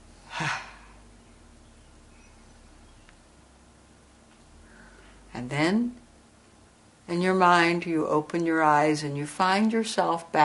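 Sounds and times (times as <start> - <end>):
person taking a deep breath during a guided meditation: 4.6 - 5.3
speech: 5.4 - 6.0, 7.1 - 10.4.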